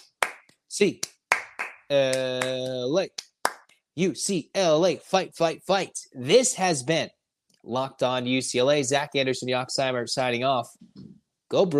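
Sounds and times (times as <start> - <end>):
rhythmic hand claps: 0.0 - 3.7
speech: 0.7 - 1.1, 1.9 - 3.3, 4.0 - 11.7.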